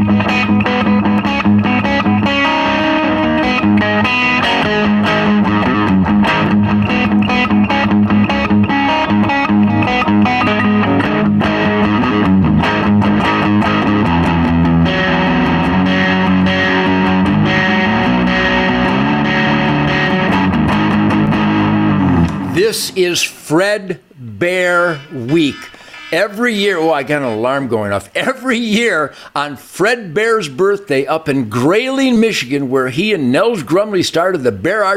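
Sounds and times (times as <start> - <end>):
distorted electric guitar playing gritty chords: 0.0 - 27.7
speech: 23.0 - 24.2, 26.1 - 34.9.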